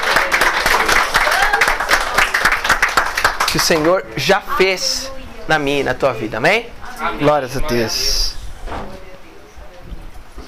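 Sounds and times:
audience applauding: 0:00.0 - 0:04.1
speech: 0:03.6 - 0:08.3.

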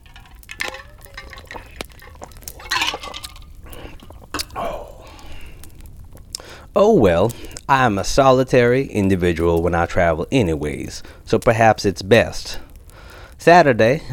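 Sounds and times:
person sipping a drink: 0:00.0 - 0:06.6, 0:07.3 - 0:07.7
speech: 0:06.8 - 0:12.6, 0:13.4 - 0:14.1.

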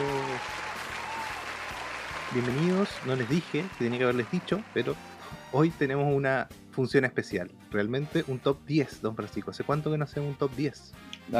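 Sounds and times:
applause: 0:00.0 - 0:05.5
speech: 0:02.3 - 0:11.3.

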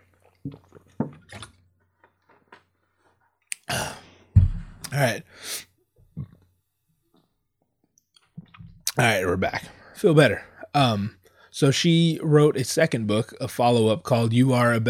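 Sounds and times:
person sipping water: 0:00.0 - 0:04.0
speech: 0:00.4 - 0:00.6, 0:05.0 - 0:05.7, 0:09.0 - 0:14.8
soft clicks and mouth noises: 0:03.5 - 0:03.8.

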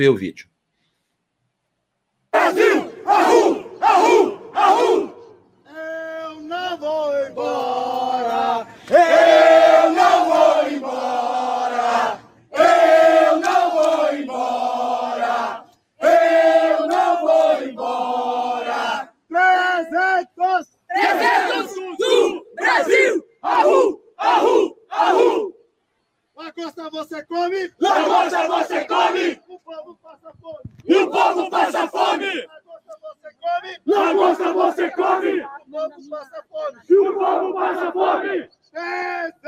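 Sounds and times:
speech: 0:00.0 - 0:00.5, 0:26.6 - 0:32.6, 0:33.4 - 0:39.4
protest crowd chanting slogans: 0:02.3 - 0:05.5, 0:06.3 - 0:20.2, 0:20.9 - 0:25.6, 0:27.7 - 0:29.6, 0:30.8 - 0:32.6, 0:33.8 - 0:35.7, 0:36.7 - 0:38.6.

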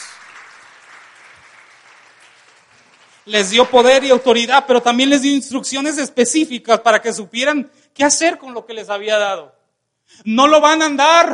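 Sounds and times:
audience applause: 0:00.0 - 0:04.3
speech: 0:03.2 - 0:11.3.

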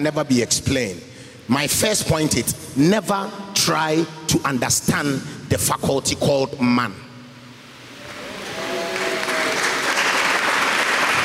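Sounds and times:
speech: 0:00.0 - 0:07.0
audience clapping: 0:08.0 - 0:11.2.

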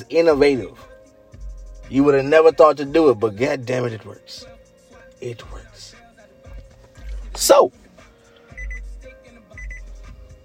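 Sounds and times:
speech: 0:00.0 - 0:00.9, 0:01.9 - 0:04.5, 0:05.2 - 0:05.9, 0:07.4 - 0:07.8
car electronic alert chime beeps: 0:08.5 - 0:08.9, 0:09.5 - 0:09.9.

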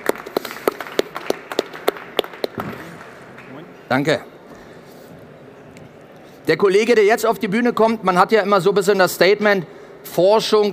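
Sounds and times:
audience applause: 0:00.0 - 0:03.7
speech: 0:03.9 - 0:04.3, 0:06.4 - 0:10.7.

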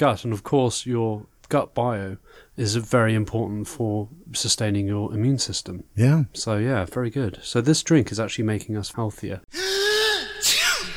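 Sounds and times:
speech: 0:00.0 - 0:09.5
person sneezing: 0:09.5 - 0:10.9.

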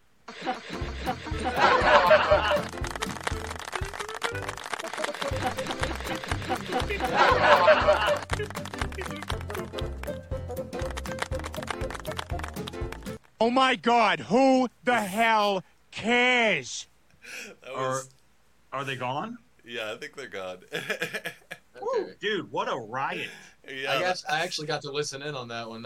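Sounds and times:
canned laughter: 0:00.3 - 0:02.7, 0:04.4 - 0:09.7, 0:20.7 - 0:21.7
canned applause: 0:01.6 - 0:13.2
speech: 0:13.4 - 0:16.9, 0:18.8 - 0:21.4, 0:22.2 - 0:25.8.

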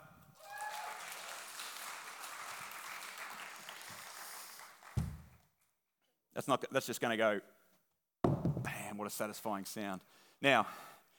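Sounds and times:
audience clapping: 0:00.4 - 0:05.4
speech: 0:06.4 - 0:07.5, 0:09.0 - 0:10.9.

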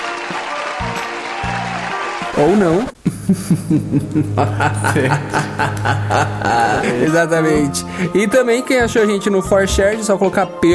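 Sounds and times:
applause: 0:00.0 - 0:02.9
speech: 0:02.4 - 0:10.7
laughter: 0:03.0 - 0:07.3.

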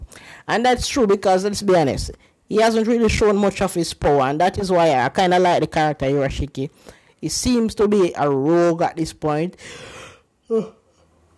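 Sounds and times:
speech: 0:00.5 - 0:10.8
person yawning: 0:09.7 - 0:10.9.

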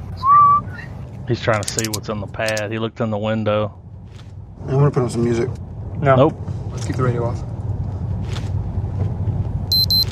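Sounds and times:
low engine rumble: 0:00.0 - 0:10.0
speech: 0:01.3 - 0:03.8, 0:04.6 - 0:07.5
random electronic beeping: 0:09.7 - 0:10.0.

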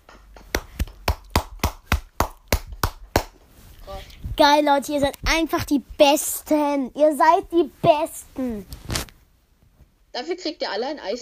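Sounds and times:
hand clapping: 0:00.4 - 0:03.5
speech: 0:04.4 - 0:08.8, 0:10.1 - 0:11.1.

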